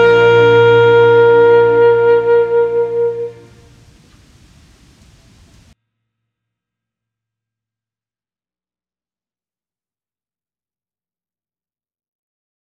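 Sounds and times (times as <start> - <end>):
saxophone: 0.0 - 3.8.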